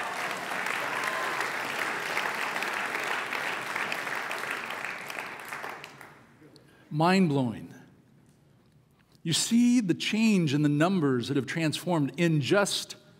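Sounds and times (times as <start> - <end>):
audience applause: 0.0 - 6.3
speech: 6.9 - 7.8, 9.2 - 13.0.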